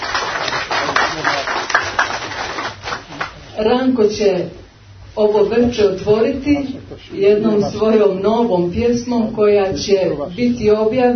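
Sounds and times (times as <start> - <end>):
audience applause welcoming guests at a poetry evening: 0.0 - 3.5
speech: 3.6 - 4.6, 5.2 - 11.1.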